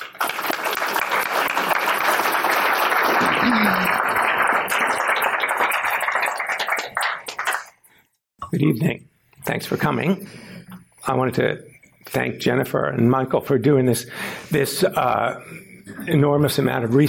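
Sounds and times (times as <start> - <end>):
audience applause welcoming speakers to an evening talk: 0.0 - 8.0
speech: 8.6 - 10.4, 11.1 - 17.0.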